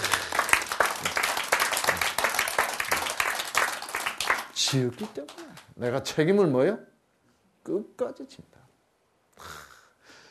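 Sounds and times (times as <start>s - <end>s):
crowd applause: 0.0s - 5.7s
speech: 4.7s - 6.9s, 7.6s - 8.7s.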